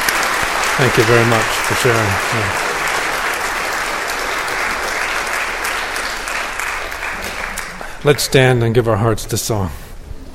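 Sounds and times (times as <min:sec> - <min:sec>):
audience applause: 0:00.0 - 0:08.4
speech: 0:00.8 - 0:02.7, 0:08.0 - 0:09.8.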